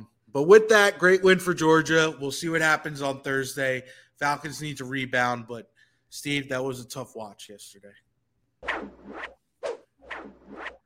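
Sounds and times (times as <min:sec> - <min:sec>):
speech: 0:00.4 - 0:08.0
swooshing scratchy transition effect on a sports radio show: 0:08.6 - 0:10.8.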